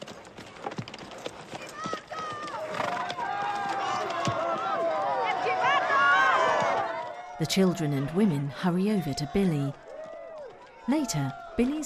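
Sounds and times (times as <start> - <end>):
clip-clop of horses' hooves in a small dusty square: 0.0 - 7.4, 9.7 - 11.8
speech: 7.4 - 9.8, 10.9 - 11.8.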